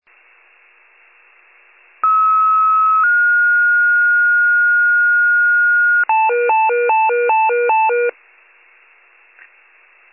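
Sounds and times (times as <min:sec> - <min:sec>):
fire pager alert: 0:02.0 - 0:08.1.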